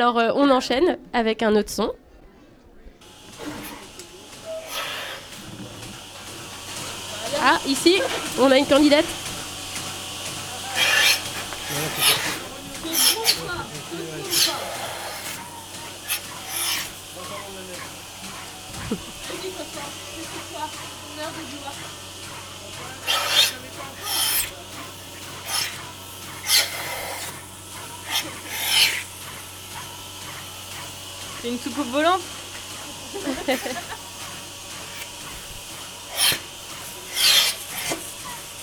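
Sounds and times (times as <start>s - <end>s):
speech: 0.0s - 2.0s, 7.4s - 9.2s, 31.4s - 32.4s, 33.1s - 33.9s
faint murmur: 0.0s - 38.6s
milking cows by hand: 3.1s - 38.6s
laughter: 5.2s - 26.9s, 30.8s - 35.2s.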